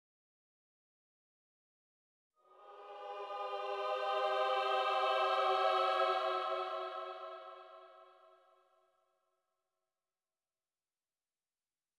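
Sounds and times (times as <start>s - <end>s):
choir singing: 2.4s - 8.6s.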